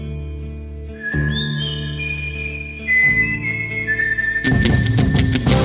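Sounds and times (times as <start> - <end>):
rhythmic melodic whistling in a song: 0.9 - 5.5.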